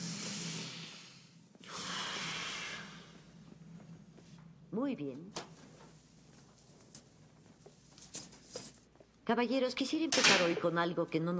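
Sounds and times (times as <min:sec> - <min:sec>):
woman taking a deep breath while biting on an object: 0:00.0 - 0:03.5
speech: 0:04.8 - 0:05.5, 0:09.3 - 0:11.3.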